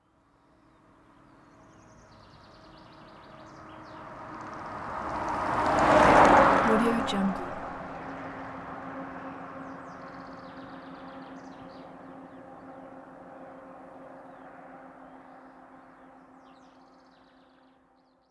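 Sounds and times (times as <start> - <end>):
van passing by on empty road: 3.7 - 9.8.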